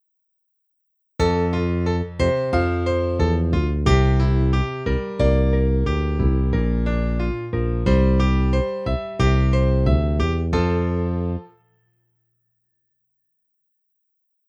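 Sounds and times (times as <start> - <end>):
instrumental music: 1.2 - 11.8.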